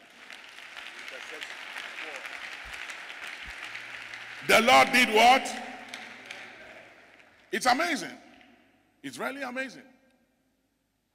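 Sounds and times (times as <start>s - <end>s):
audience clapping hands: 0.0s - 8.5s
speech: 1.3s - 2.5s, 4.4s - 5.7s, 7.5s - 8.2s, 9.0s - 9.9s.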